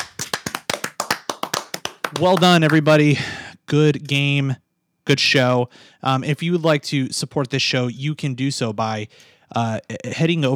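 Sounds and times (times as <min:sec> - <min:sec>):
hands clapping: 0:00.0 - 0:03.0
speech: 0:02.1 - 0:10.5.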